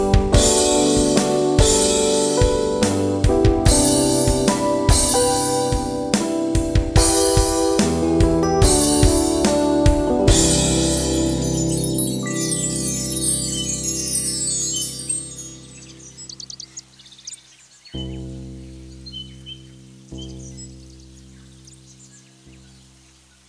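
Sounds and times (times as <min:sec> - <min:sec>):
ambient Rhodes electric piano: 0:00.0 - 0:16.4.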